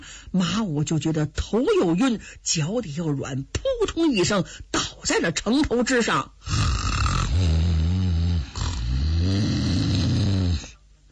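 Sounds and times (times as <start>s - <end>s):
speech: 0.3s - 6.8s
person imitating loud snoring: 6.4s - 10.8s.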